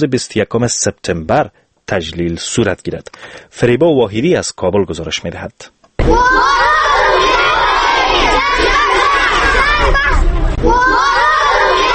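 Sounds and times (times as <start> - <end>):
speech: 0.0 - 6.7
schoolchildren at Istiqlal high school in Kabul shouting for peace: 6.0 - 11.9.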